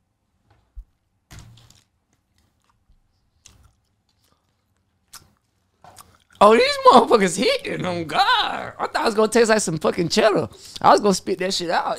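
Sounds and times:
person chewing macaroni-shaped gummies: 1.5 - 6.4
speech: 6.4 - 11.9.

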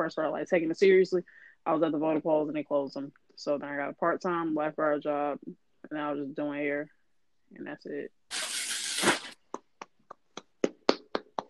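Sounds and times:
speech: 0.0 - 8.2
hands clapping: 9.5 - 11.4.

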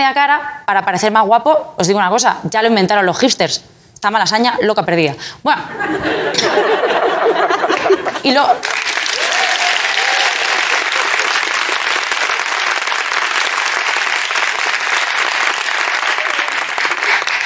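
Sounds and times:
speech: 0.0 - 8.9
laughter: 5.7 - 8.2
audience applause: 8.6 - 17.4.

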